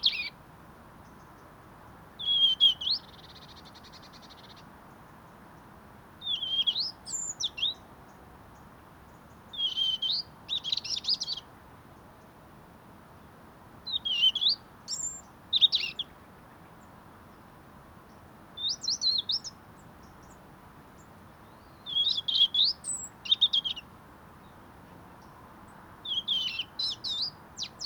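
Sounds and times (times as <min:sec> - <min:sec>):
European robin singing: 0:00.0 - 0:00.4, 0:02.2 - 0:04.7, 0:06.2 - 0:11.5, 0:13.9 - 0:16.2, 0:18.1 - 0:24.6, 0:26.0 - 0:27.8.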